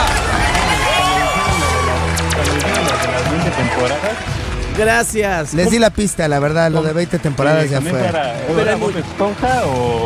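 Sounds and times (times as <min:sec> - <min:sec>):
audience applause and cheering: 0:00.0 - 0:05.9
speech: 0:04.8 - 0:10.0.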